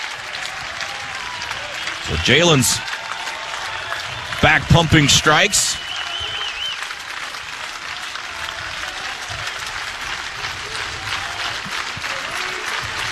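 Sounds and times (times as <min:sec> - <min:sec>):
ballpark crowd clapping in encouragement: 0:00.0 - 0:13.1
speech: 0:02.1 - 0:02.9, 0:04.5 - 0:05.9
faint whistle: 0:05.7 - 0:06.9.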